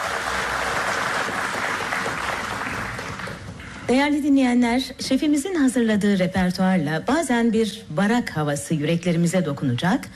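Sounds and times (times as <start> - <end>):
audience applause for the conductor of a radio folk music ensemble: 0.0 - 3.6
speech: 3.9 - 10.1.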